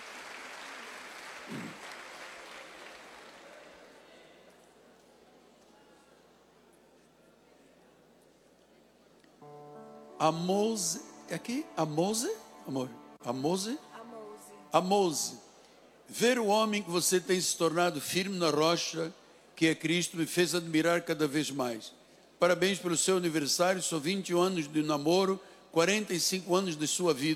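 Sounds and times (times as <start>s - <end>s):
crowd applause: 0.0s - 4.1s
speech: 10.2s - 13.9s, 14.7s - 15.4s, 16.1s - 27.3s.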